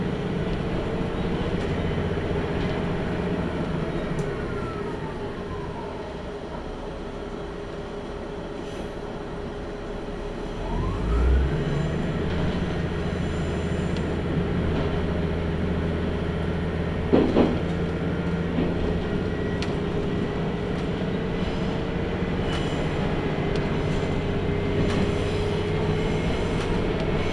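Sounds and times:
Tenryu Hamanako Railway train interior rumble and hum: 0.0s - 27.3s.

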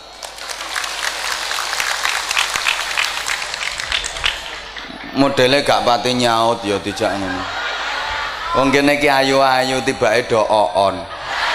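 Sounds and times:
crowd applauding: 0.0s - 8.7s
laughter: 3.8s - 11.5s
speech: 5.2s - 7.6s, 8.5s - 11.2s.

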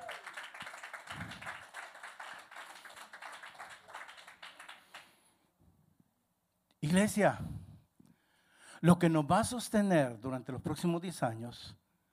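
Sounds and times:
audience applause: 0.0s - 5.1s
speech: 6.8s - 7.5s, 8.8s - 11.8s.

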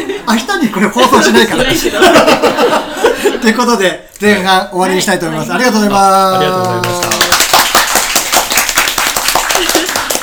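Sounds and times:
laughter: 0.0s - 3.8s, 9.4s - 10.2s
speech: 0.3s - 7.2s
clapping: 6.6s - 10.2s.

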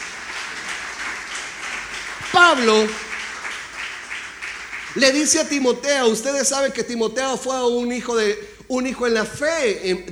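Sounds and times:
applause: 0.0s - 5.7s
speech: 2.3s - 3.0s, 5.0s - 10.1s.

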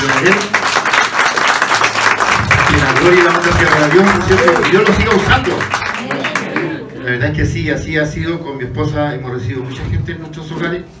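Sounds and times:
audience applause: 0.0s - 6.8s
speech: 0.2s - 0.6s, 3.0s - 5.9s, 7.1s - 10.9s.

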